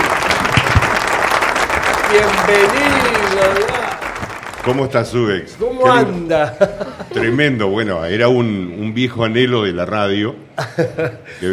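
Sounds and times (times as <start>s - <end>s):
audience applause: 0.0s - 5.2s
speech: 2.1s - 3.8s, 4.6s - 11.5s
laughter: 5.9s - 7.6s, 10.6s - 11.5s.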